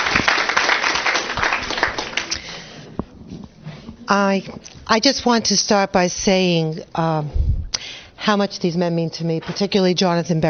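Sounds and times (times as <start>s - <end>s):
crowd applause: 0.0s - 2.9s
speech: 4.1s - 7.4s, 8.2s - 10.4s.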